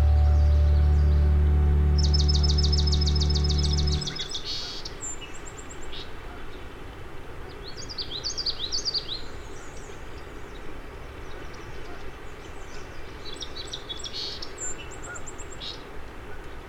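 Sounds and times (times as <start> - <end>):
loud low hum: 0.0 - 4.3
migrant songbirds singing near the Crane River: 0.0 - 6.6, 7.5 - 16.6
soft steady hiss: 0.0 - 16.6.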